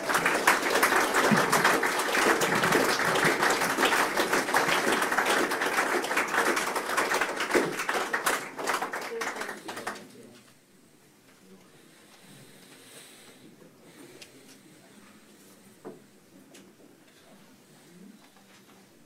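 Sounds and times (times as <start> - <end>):
audience applauding at a special council meeting: 0.0 - 10.3.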